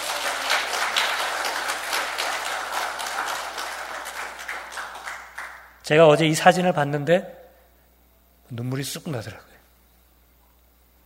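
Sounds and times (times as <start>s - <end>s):
audience applause: 0.0s - 5.8s
speech: 5.9s - 7.4s, 8.5s - 9.5s.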